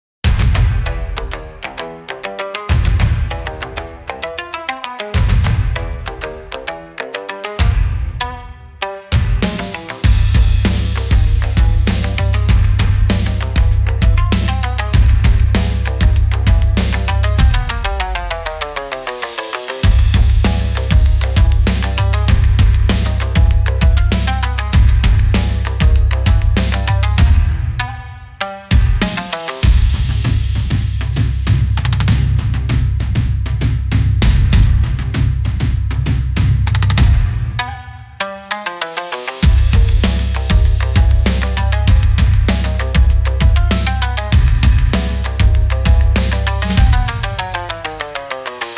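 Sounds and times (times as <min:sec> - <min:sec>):
cinematic Japanese-style battle music: 0:00.2 - 0:04.3, 0:07.6 - 0:38.2, 0:39.4 - 0:48.7.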